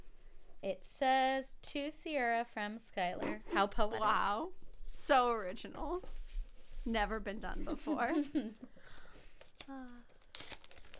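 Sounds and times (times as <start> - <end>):
speech: 0.6 - 6.2, 6.8 - 8.8, 9.6 - 10.1
wrapping paper being torn open on a Christmas gift: 9.3 - 10.9.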